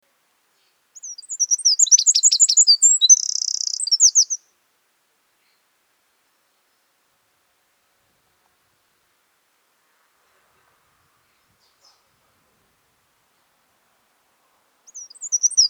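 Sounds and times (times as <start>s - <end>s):
Northern wren song: 0.6s - 4.5s, 14.9s - 15.6s.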